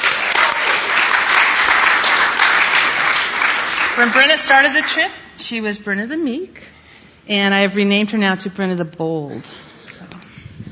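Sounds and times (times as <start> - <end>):
audience applause: 0.0 - 5.1
speech: 4.0 - 6.7, 7.3 - 9.6.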